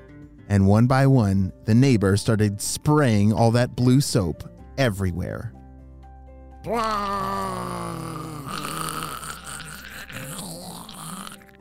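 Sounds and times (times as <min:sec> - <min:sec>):
speech: 0:00.5 - 0:05.6, 0:06.6 - 0:08.7
person vocally imitating gummy bears melting: 0:06.7 - 0:11.5.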